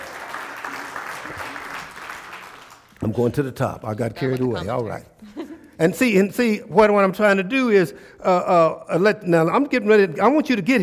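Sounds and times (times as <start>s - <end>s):
audience hand clapping: 0.0s - 3.3s
speech: 3.0s - 5.2s, 5.8s - 10.8s.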